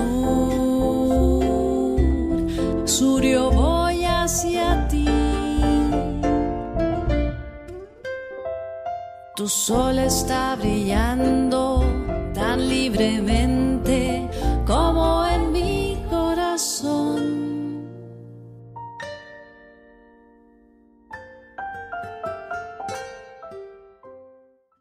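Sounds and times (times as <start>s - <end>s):
commercial tango song sung in Spanish from South America: 0.0s - 19.7s.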